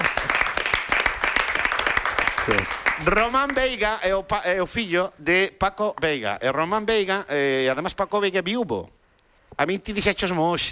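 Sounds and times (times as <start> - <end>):
brief applause from studio audience: 0.0 - 3.8
speech: 2.5 - 9.0, 9.6 - 10.7.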